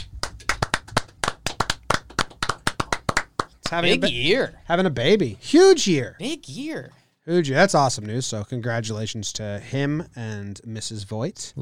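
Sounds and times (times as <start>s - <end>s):
hands clapping rapidly: 0.0s - 4.0s
speech: 3.7s - 11.6s.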